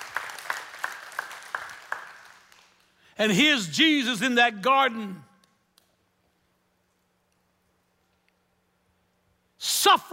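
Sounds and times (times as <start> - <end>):
audience applause: 0.0 - 2.8
speech: 3.2 - 5.3.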